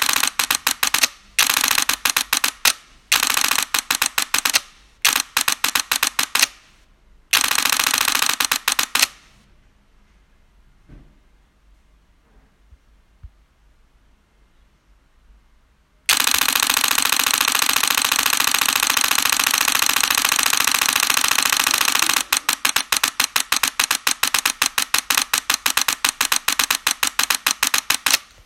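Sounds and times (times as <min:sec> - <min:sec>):
Nikon D5 camera shutter burst at 12 frames per second: 0:00.0 - 0:06.7, 0:07.3 - 0:09.4, 0:16.1 - 0:28.4.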